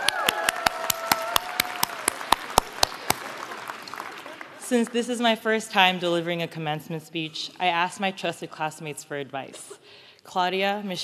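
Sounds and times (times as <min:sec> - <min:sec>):
applause: 0:00.0 - 0:04.8
speech: 0:04.7 - 0:11.0.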